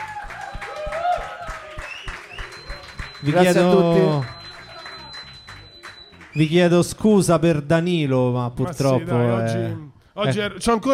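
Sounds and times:
cheers and whoops: 0.0s - 2.7s
audience applause: 0.0s - 6.4s
speech: 3.2s - 4.4s, 6.4s - 10.9s.

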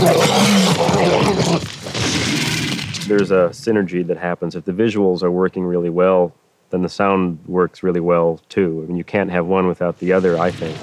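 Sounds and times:
dinosaur-like growl made from dog tugging rope toy: 0.0s - 3.4s
speech: 3.1s - 10.8s.

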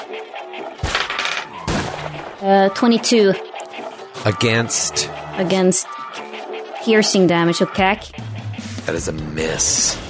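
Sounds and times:
semi-automatic pistol gunshots in a video game: 1.6s - 2.4s
speech: 2.4s - 3.5s, 4.2s - 6.0s, 6.8s - 10.0s.

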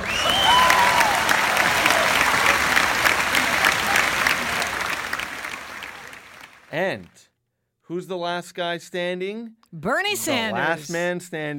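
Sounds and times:
audience applause: 0.0s - 7.0s
speech: 7.9s - 11.5s.

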